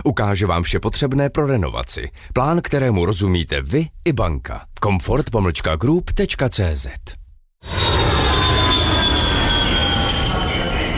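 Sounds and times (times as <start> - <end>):
speech: 0.0 - 7.8
jet airplane roar: 7.6 - 10.9.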